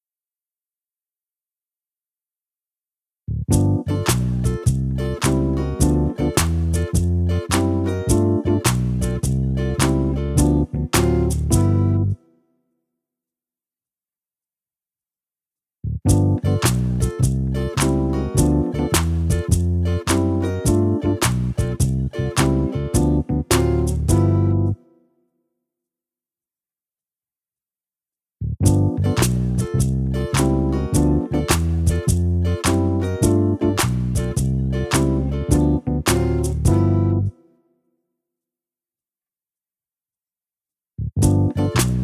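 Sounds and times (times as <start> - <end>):
instrumental music: 3.5 - 12.2, 16.1 - 24.9, 28.7 - 37.4, 41.2 - 42.0.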